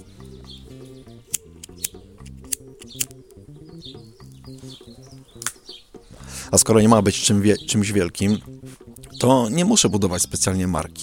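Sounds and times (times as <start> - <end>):
steady low droning musical background: 0.0 - 11.0
lighter flicked to relight a cigarette: 1.3 - 3.4
speech: 6.5 - 8.5, 9.2 - 11.0.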